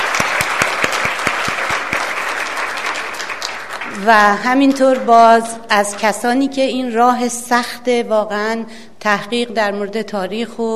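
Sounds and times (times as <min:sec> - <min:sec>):
audience applauding at a gathering to honour a guest: 0:00.0 - 0:05.1
speech: 0:04.0 - 0:10.7.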